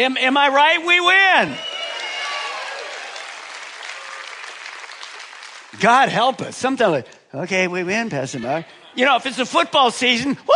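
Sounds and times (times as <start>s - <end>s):
speech: 0.0s - 1.7s, 5.7s - 10.5s
few people clapping: 1.6s - 6.3s.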